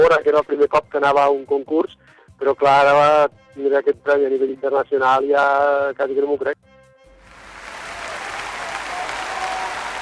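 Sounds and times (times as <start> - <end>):
speech: 0.0 - 6.6
applause: 7.2 - 10.0.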